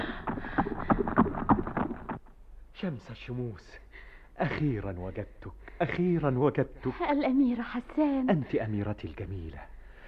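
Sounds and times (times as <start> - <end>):
horse hooves clopping as a prince approaches on horseback: 0.0 - 2.2
speech: 2.8 - 3.8, 4.4 - 9.7.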